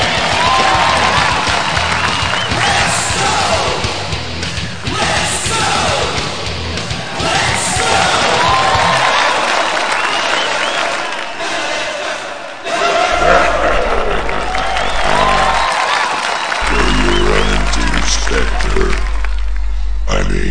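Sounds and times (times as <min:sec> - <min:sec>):
loud clapping and shouting: 0:00.0 - 0:19.7
huge wrestling crowd roaring and cheering: 0:00.0 - 0:20.4
whistles: 0:00.2 - 0:03.0, 0:09.6 - 0:11.4, 0:14.5 - 0:18.0
laughter: 0:12.7 - 0:19.1.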